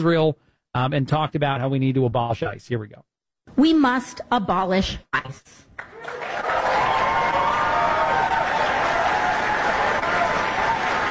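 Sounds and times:
speech: 0.0 - 6.5
crowd applauding and cheering at a rally: 5.8 - 11.0.

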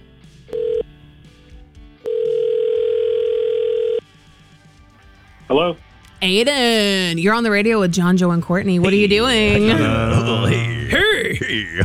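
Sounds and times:
phone line ring tone: 0.5 - 0.9, 2.0 - 4.0
speech: 5.5 - 10.7
laughter: 8.8 - 11.8.

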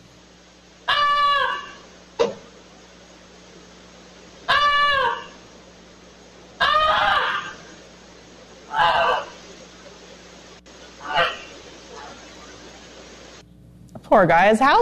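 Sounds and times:
steady low hum: 0.0 - 14.3
pet goose honking: 0.8 - 1.9, 4.4 - 5.4, 6.6 - 7.8, 8.6 - 9.7, 11.0 - 12.4
speech: 14.1 - 14.8.

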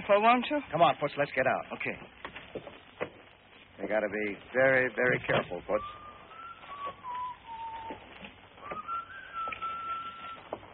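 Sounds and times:
speech: 0.1 - 2.7, 3.8 - 6.0
man whistling a tune while walking: 5.7 - 10.5.

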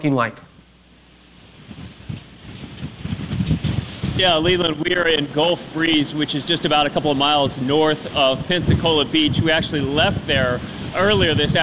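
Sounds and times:
speech: 0.0 - 0.5, 4.2 - 11.6
storm wind: 0.9 - 11.6
storm rain: 1.4 - 10.0.

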